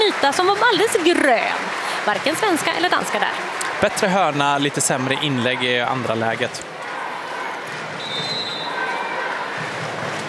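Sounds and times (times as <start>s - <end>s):
crowd noise: 0.0s - 10.2s
speech: 0.2s - 6.7s
referee's whistle blast: 8.0s - 8.8s.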